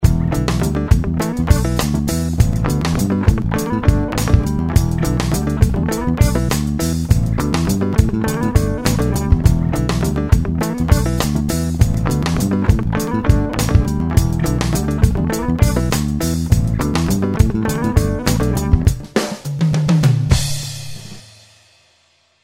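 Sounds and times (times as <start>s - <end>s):
funk music: 0.0s - 21.2s.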